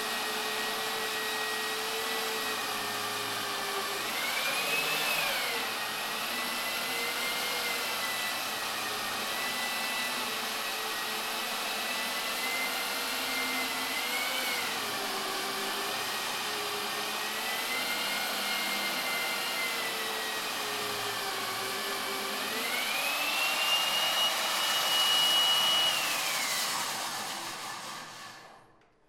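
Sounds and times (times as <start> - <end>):
core drill boring into concrete wall for seismic survey: 0.0 - 28.8.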